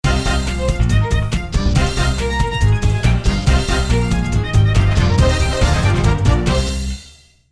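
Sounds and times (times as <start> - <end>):
opening theme music and eyecatch jingle: 0.0 - 7.3.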